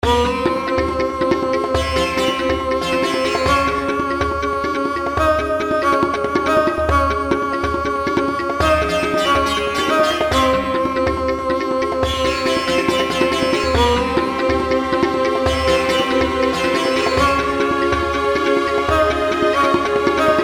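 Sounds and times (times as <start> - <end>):
background music: 0.0 - 20.4.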